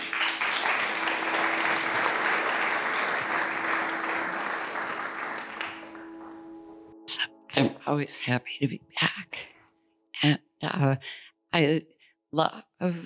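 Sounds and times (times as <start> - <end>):
audience applause welcoming a speaker: 0.0 - 6.7
speech: 7.1 - 9.2, 10.2 - 13.0.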